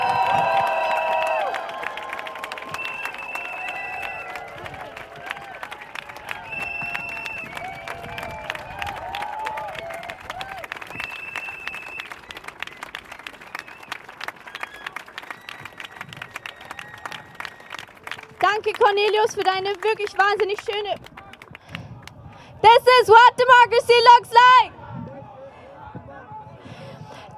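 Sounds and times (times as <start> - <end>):
cheers and whistles: 0.0 - 18.3
rally crowd applause: 0.0 - 22.2
speech: 18.6 - 21.1, 22.8 - 24.8.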